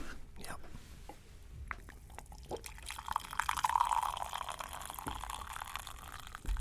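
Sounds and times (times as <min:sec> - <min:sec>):
soft voice: 0:00.4 - 0:00.8
coffee being poured: 0:01.8 - 0:06.5.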